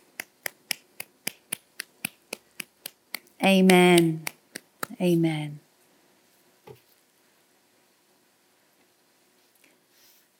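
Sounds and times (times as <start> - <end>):
audience clapping in praise: 0.0 - 5.0
speech: 3.4 - 4.3, 5.0 - 5.6.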